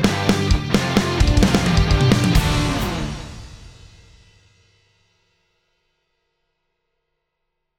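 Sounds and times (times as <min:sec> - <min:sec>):
Ludwig 5x14 Black Beauty snare drum, dry: 0:00.1 - 0:04.4.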